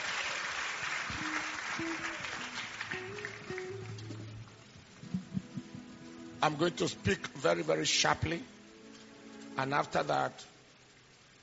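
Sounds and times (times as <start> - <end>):
audience clapping hands: 0.0 - 5.9
speech: 1.1 - 2.2, 6.4 - 8.5, 9.6 - 10.5
low sustained keyboard notes: 1.2 - 10.5.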